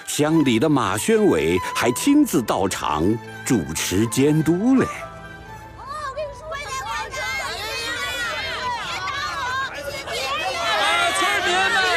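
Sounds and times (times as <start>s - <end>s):
speech: 0.2s - 5.1s
villagers chattering before a meeting: 5.7s - 11.9s.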